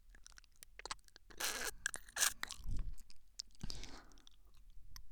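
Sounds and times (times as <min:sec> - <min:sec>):
left ear licking ASMR: 0:00.7 - 0:04.4.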